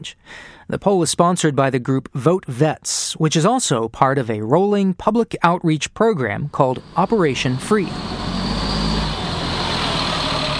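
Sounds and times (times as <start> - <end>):
speech: 0.0 - 8.2
biodiesel-powered bus engine rumble: 6.6 - 10.5.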